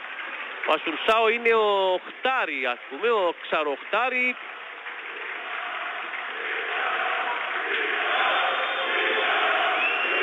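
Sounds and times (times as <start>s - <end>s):
speech: 0.7s - 4.5s
football fans shouting and chanting in stadium: 4.7s - 10.2s.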